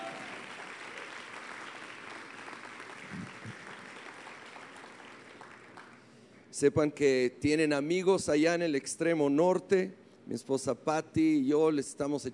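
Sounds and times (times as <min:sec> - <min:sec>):
crowd applauding: 0:00.0 - 0:06.1
speech: 0:06.6 - 0:12.3.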